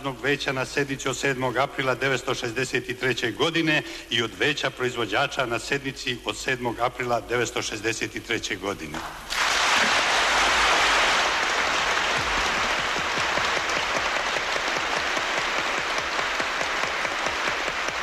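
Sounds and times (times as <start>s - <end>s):
speech: 0.0s - 9.4s
members of parliament applauding the 1963 constitution of Yugoslavia: 9.1s - 18.0s.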